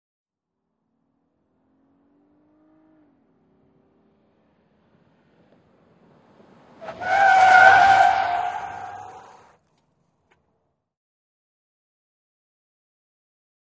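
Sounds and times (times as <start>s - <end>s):
SUV truck accelerating: 0.7s - 9.6s
SUV truck tyres skidding: 4.8s - 10.5s.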